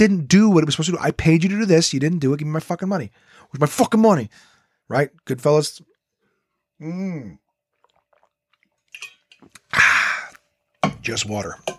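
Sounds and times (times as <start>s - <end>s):
speech: 0.0s - 5.9s, 6.8s - 7.4s, 11.0s - 11.7s
person drinking from a screw-top water bottle: 7.2s - 10.5s
voiced exhale: 9.7s - 10.4s.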